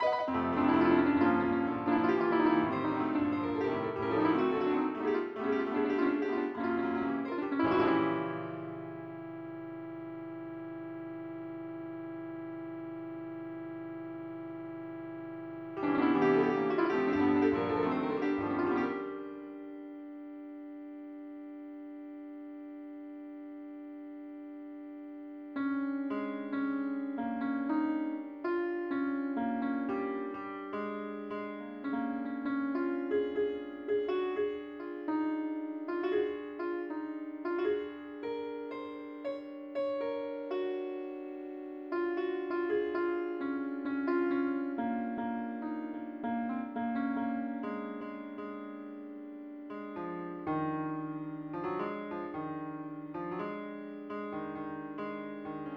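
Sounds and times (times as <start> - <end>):
piano: 0.0 - 55.7.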